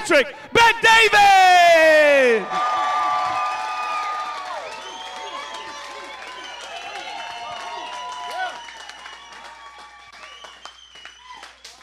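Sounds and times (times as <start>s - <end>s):
speech: 0.1s - 2.8s
audience cheering: 1.2s - 11.8s
audience applause: 2.4s - 11.8s.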